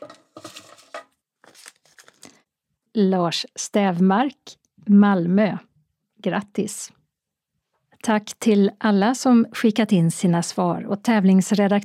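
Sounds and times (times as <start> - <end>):
answer slips for a prize draw shuffled by hand: 0.0 - 2.4
speech: 3.0 - 7.0, 8.0 - 11.8.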